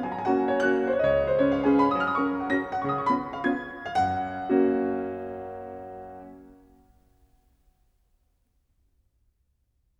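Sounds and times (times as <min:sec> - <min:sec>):
piano waltz in G flat: 0:00.0 - 0:06.8.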